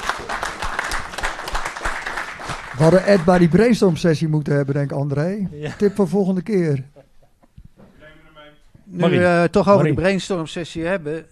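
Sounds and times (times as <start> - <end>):
audience applause at a meeting: 0.0 - 3.9
speech: 2.8 - 6.9, 8.9 - 11.3.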